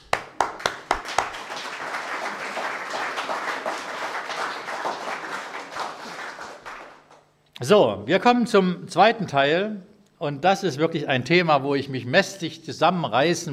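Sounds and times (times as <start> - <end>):
audience applause: 0.0 - 7.3
speech: 7.6 - 13.5.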